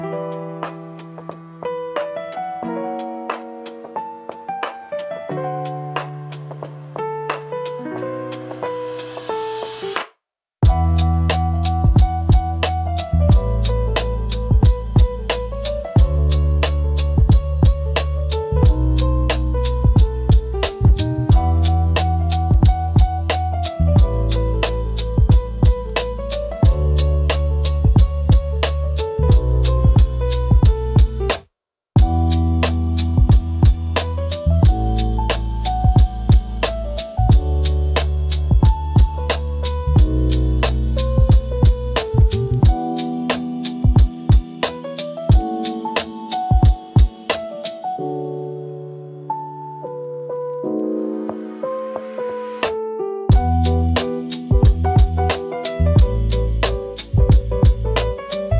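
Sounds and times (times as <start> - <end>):
mysterious lo-fi piano intro at 120 BPM: 0.0 - 10.0, 10.6 - 31.3, 32.0 - 58.5.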